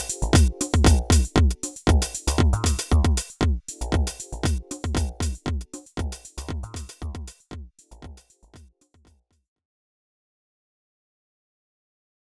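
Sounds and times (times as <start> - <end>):
JoMoX Alpha Base drum machine beat: 0.0 - 9.1.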